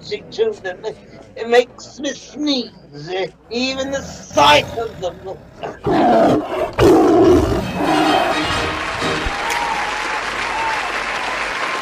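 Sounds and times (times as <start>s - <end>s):
speech: 0.1s - 8.4s
tiger roaring: 3.6s - 8.5s
crowd applause: 7.6s - 11.8s.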